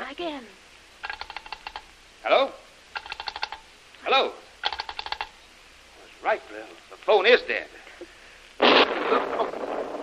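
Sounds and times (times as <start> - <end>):
speech: 0.2 - 0.6, 2.2 - 2.6, 4.2 - 4.4, 6.3 - 7.8
heavy explosion with long rumbling tail: 8.6 - 10.0.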